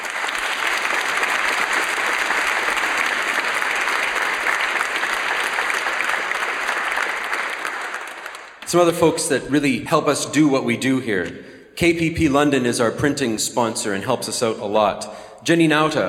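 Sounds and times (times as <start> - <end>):
crowd applause: 0.0 - 8.7
speech: 8.7 - 16.0.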